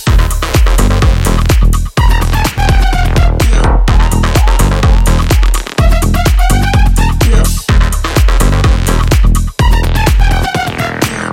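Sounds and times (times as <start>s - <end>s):
acid drum boom: 0.0s - 10.8s.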